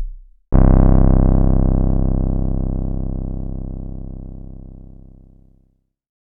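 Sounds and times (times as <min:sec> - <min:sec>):
Juno-106 synthesizer: 0:00.6 - 0:05.6.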